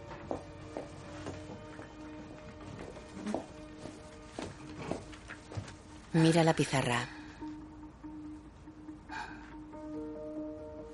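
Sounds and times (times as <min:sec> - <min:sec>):
soft footsteps of a woman walking toward a green blackboard: 0:00.0 - 0:06.2
music: 0:00.0 - 0:10.9
speech: 0:06.2 - 0:07.2.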